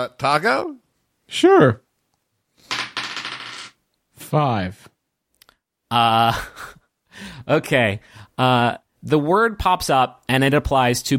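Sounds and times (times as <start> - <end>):
speech: 0.0 - 1.8, 4.3 - 4.9, 5.9 - 11.1
dice rolled during a game: 2.7 - 3.7.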